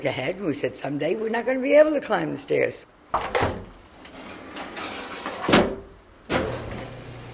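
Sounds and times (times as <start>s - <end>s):
speech: 0.0s - 3.8s
home elevator doors sliding and clunking: 3.2s - 7.3s.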